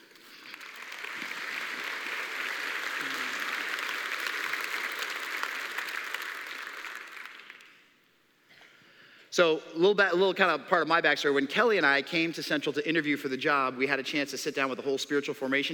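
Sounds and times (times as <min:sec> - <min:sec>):
audience applause at a church gathering: 0:00.0 - 0:07.8
speech: 0:09.4 - 0:15.7.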